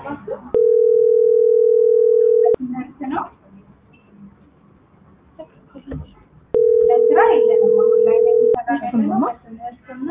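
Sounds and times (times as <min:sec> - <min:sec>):
telephone ringback tone after a call is dialed: 0:00.6 - 0:02.6, 0:06.6 - 0:08.6.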